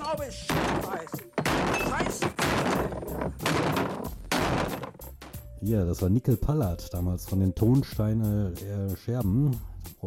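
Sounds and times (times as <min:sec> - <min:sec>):
speech: 0:00.1 - 0:00.8, 0:05.6 - 0:10.0
table being smashed to pieces: 0:00.5 - 0:05.4.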